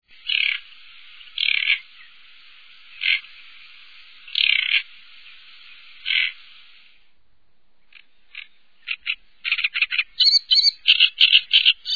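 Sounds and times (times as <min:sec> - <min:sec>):
great reed warbler singing: 0:00.1 - 0:06.5, 0:07.8 - 0:11.9.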